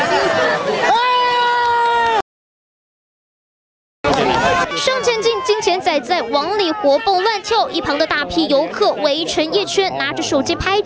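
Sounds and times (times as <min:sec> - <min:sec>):
onlookers cheering outdoors: 0:00.0 - 0:02.2, 0:04.0 - 0:10.8
onlookers clapping: 0:04.0 - 0:04.5
speech: 0:05.9 - 0:10.8.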